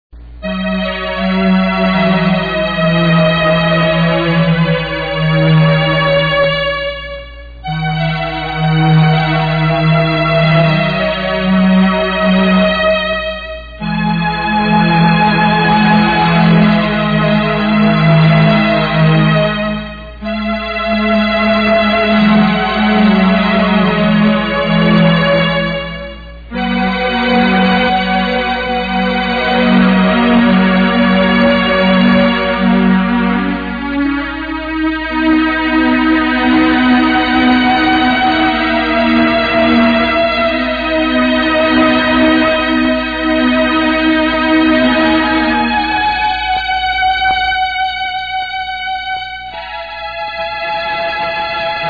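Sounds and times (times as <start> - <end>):
organ: 0.2 - 51.8.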